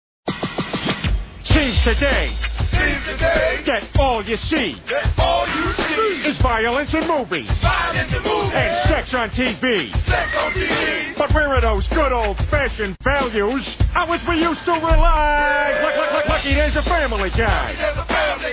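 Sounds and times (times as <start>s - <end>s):
rap music: 0.3s - 18.5s.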